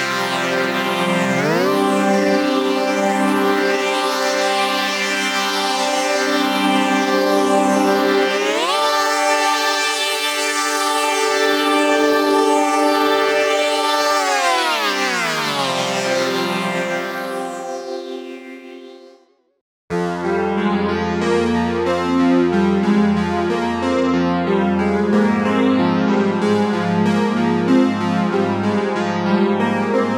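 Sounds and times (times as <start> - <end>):
PS3300 polyphonic synth and pads: 0.0 - 19.2, 19.9 - 30.1.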